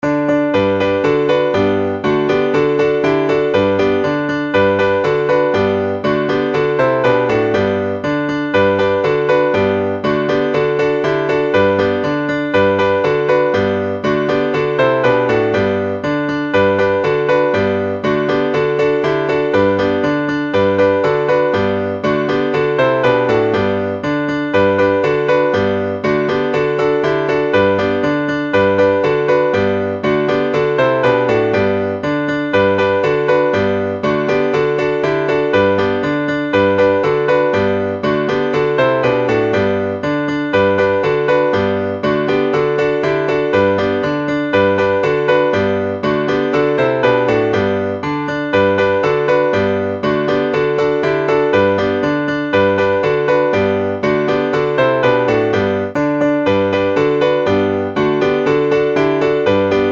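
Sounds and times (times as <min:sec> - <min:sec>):
instrumental children's song: 0:00.0 - 0:59.9.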